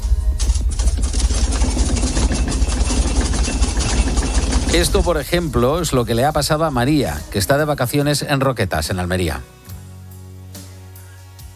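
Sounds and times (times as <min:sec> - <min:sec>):
earthquake rumble: 0:00.0 - 0:08.0
humming: 0:00.0 - 0:08.0
windows of a house rattling: 0:00.4 - 0:07.2
speech: 0:04.7 - 0:09.6.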